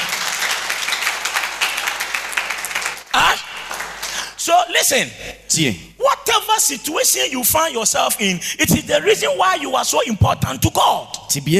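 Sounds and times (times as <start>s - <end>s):
audience clapping: 0.0s - 4.4s
single loud voice crying out: 3.1s - 3.5s
speech: 4.4s - 11.5s.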